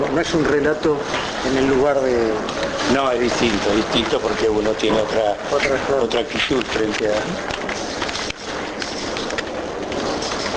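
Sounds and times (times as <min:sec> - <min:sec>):
typewriters clattering: 0:00.0 - 0:10.5
speech: 0:00.2 - 0:07.8.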